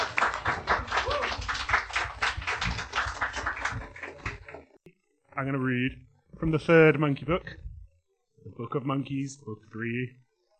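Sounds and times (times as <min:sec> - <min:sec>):
audience applause: 0:00.0 - 0:04.7
speech: 0:05.4 - 0:07.6, 0:08.4 - 0:10.2.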